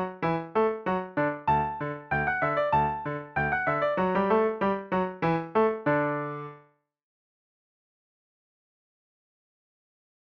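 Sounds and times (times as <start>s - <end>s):
musette in D: 0.0s - 6.6s.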